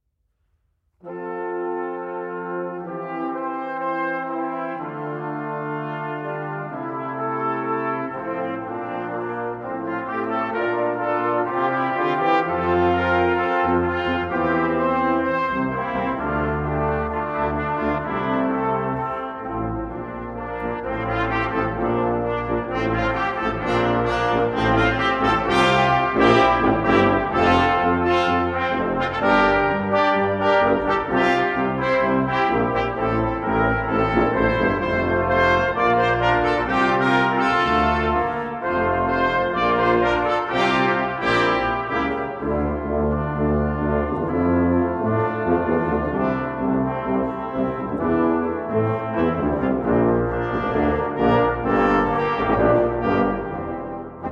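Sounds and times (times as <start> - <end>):
brass instruments: 1.0 - 54.3.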